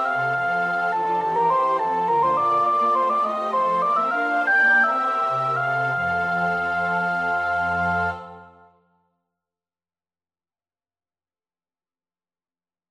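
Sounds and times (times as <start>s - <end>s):
soprano singing: 0.0s - 8.7s.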